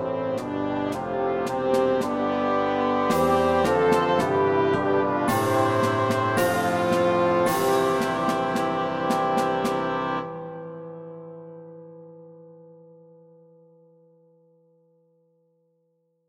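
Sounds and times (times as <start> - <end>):
bassoon playing melody: 0.0 - 11.3.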